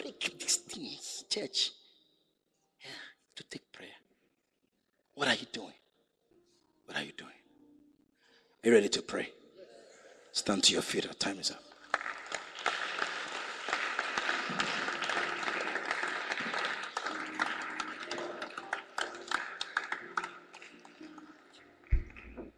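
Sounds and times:
speech: 0.5s - 1.8s, 8.6s - 9.4s, 10.4s - 11.7s
crowd clapping: 11.7s - 22.5s.

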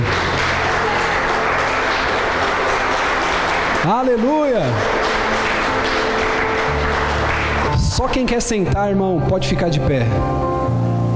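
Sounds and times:
audience applause: 0.0s - 8.6s
speech: 3.9s - 5.0s, 8.0s - 10.5s.

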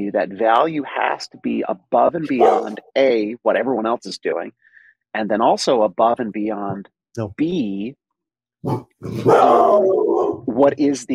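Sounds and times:
speech: 0.0s - 8.0s, 8.6s - 11.1s
dogs barking: 2.3s - 2.8s, 8.6s - 10.5s.

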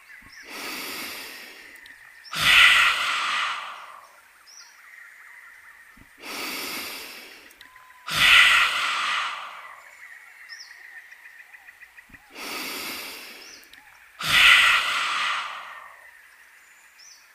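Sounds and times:
soft breathy inhales: 0.3s - 4.2s, 6.1s - 10.0s, 12.2s - 16.1s
yoga lion breath forceful exhales: 0.4s - 1.8s, 2.4s - 4.1s, 6.2s - 7.5s, 8.1s - 9.9s, 12.3s - 13.6s, 14.2s - 16.1s.

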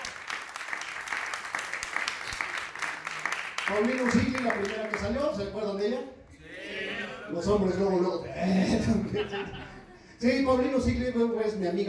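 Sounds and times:
audience applause: 0.0s - 5.2s
speech: 3.7s - 6.2s, 7.3s - 9.6s, 10.2s - 11.8s
laughter: 8.3s - 10.2s.

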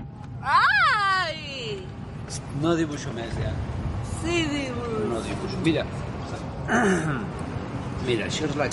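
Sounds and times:
girl screaming during a flight: 0.5s - 1.3s
speech: 2.6s - 6.1s, 6.7s - 7.4s, 8.0s - 8.7s.

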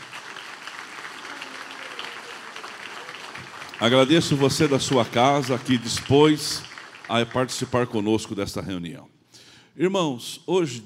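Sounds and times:
audience applauding: 0.0s - 8.0s
speech: 3.8s - 9.2s, 9.8s - 10.8s.

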